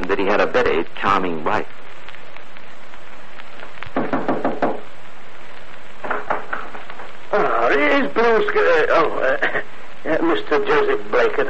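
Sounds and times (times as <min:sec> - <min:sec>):
faint hiss: 0:00.0 - 0:11.4
speech: 0:00.1 - 0:02.0, 0:07.7 - 0:11.4
knocking on a wooden front door: 0:04.0 - 0:04.8.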